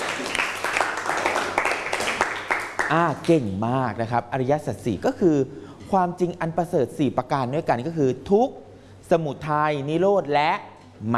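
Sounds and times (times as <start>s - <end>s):
group of students clapping: 0.0s - 3.0s
speech: 2.9s - 11.1s.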